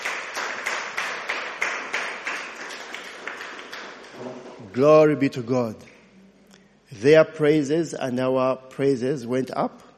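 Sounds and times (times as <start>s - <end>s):
audience clapping for the worship team: 0.0s - 4.9s
speech: 4.2s - 5.9s, 6.9s - 9.9s.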